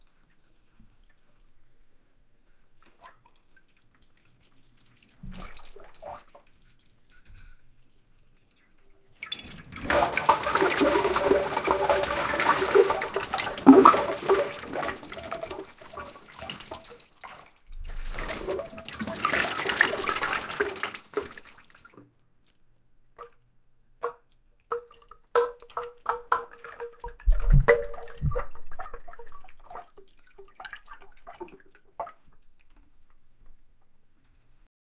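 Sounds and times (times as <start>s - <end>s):
diarrhea splattering in a bucket: 9.2s - 21.9s, 24.7s - 31.7s.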